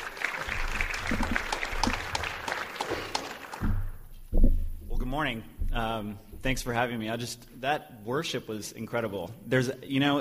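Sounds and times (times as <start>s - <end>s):
audience applause: 0.0s - 4.0s
low thump: 3.6s - 6.7s
speech: 5.2s - 10.2s.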